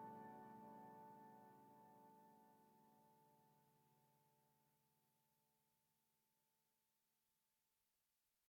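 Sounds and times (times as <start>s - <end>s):
lullaby music: 0.0s - 2.8s.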